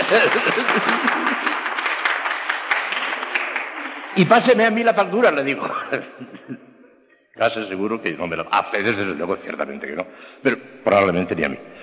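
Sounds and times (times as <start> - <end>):
lecture audience applause: 0.0 - 5.2
laughter: 0.0 - 6.8
speech: 0.1 - 1.2, 4.2 - 6.7, 7.4 - 11.8.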